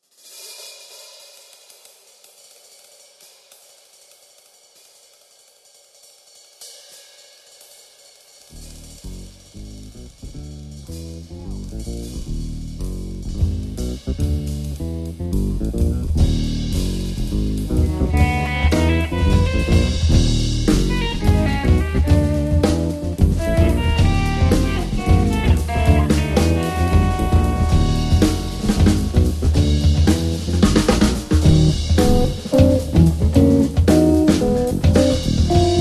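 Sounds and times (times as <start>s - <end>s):
drum: 8.5s - 35.7s.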